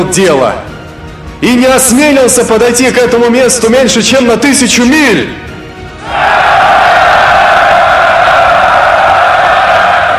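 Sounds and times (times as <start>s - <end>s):
speech: 0.0s - 0.7s, 1.4s - 6.2s
crowd shouting in unison: 6.0s - 10.1s.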